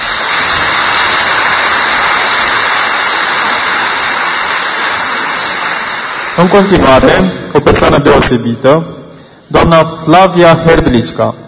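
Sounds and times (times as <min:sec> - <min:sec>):
audience applause: 0:00.0 - 0:07.1
speech: 0:06.4 - 0:11.4.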